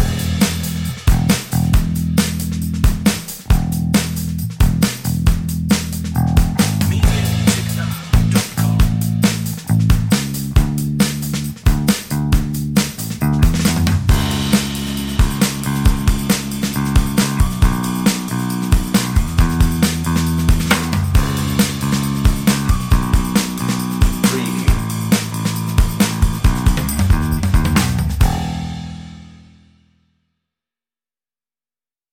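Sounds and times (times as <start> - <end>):
breezy inspiring drums and bass: 0.0 - 29.7.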